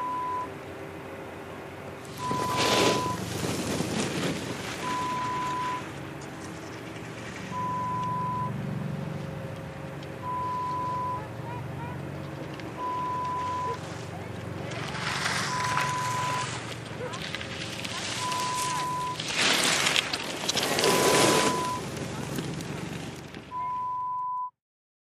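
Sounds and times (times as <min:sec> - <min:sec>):
ski slope ambience: 0:00.0 - 0:24.4.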